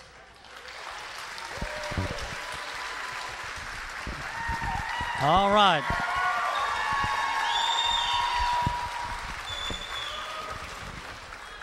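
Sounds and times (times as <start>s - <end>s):
audience clapping welcoming a performer: 0.0s - 11.6s
speech: 5.2s - 6.0s.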